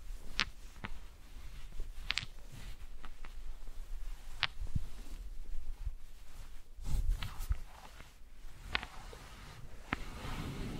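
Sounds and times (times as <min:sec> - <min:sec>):
soft rustles: 0:00.0 - 0:10.7
wooden balls tapped and handled: 0:00.3 - 0:01.0, 0:01.8 - 0:03.5, 0:04.3 - 0:04.6.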